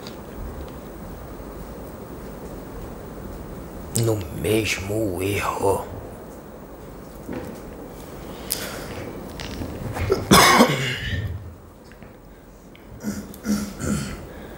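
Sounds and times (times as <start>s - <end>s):
speech: 4.0s - 6.0s
coughing: 9.9s - 11.5s, 12.9s - 14.5s.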